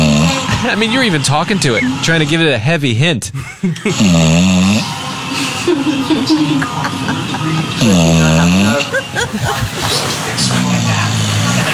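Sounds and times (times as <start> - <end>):
sleeping dog snoring: 0.0 - 0.8, 3.9 - 5.6, 6.9 - 11.7
laughter: 0.3 - 2.4, 3.3 - 4.1, 5.3 - 11.0
speech: 0.7 - 10.4.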